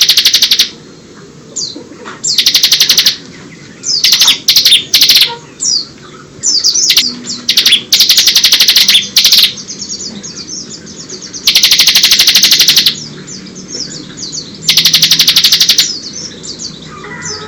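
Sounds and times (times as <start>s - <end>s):
bar-winged prinia singing buzzy trills and chatters: 0.0s - 17.4s.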